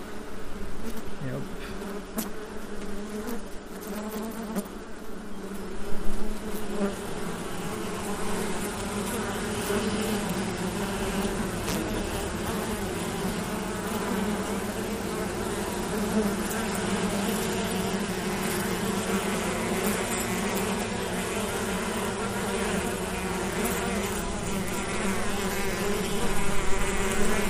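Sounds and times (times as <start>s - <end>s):
honeybees buzzing in an opened beehive: 0.0s - 27.4s.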